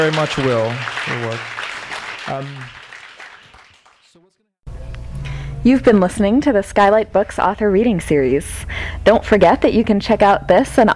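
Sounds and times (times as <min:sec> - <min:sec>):
speech: 0:00.0 - 0:01.6, 0:02.3 - 0:02.8, 0:05.6 - 0:10.9
audience applause: 0:00.0 - 0:04.2.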